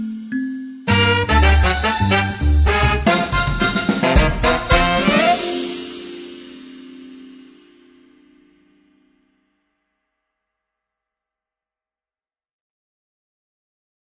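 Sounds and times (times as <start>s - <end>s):
happy tune: 0.0s - 8.9s.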